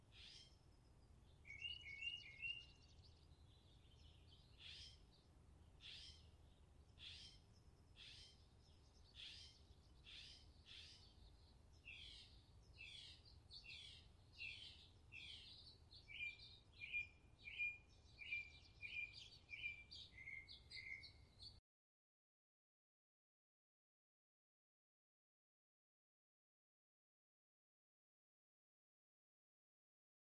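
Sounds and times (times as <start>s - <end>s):
birds chirping: 0.0s - 21.6s.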